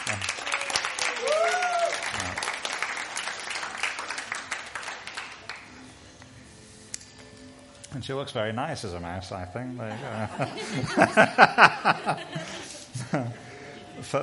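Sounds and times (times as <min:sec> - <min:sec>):
audience clapping: 0:00.0 - 0:05.7
cheer or whistle: 0:00.4 - 0:02.0
speech: 0:07.9 - 0:14.2
laughter: 0:09.9 - 0:13.6.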